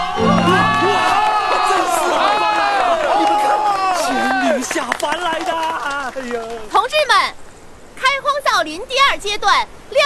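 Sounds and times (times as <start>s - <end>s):
crowd applauding: 0.0s - 3.5s, 4.3s - 6.8s
many high excited voices whooping and shouting: 0.0s - 4.6s
speech: 8.6s - 10.0s.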